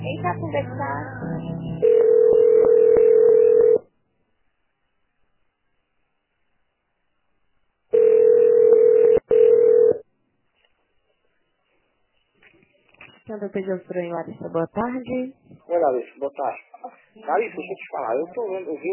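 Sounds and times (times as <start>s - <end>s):
speech: 0.1s - 2.8s, 13.3s - 18.9s
phone line ringback tones: 1.8s - 3.8s, 7.9s - 10.0s.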